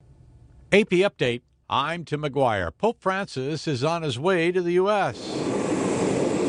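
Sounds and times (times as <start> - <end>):
speech: 0.7 - 5.5
jet engines of the Pope's plane roaring leaving Santiago airport, Cuba: 4.9 - 6.4.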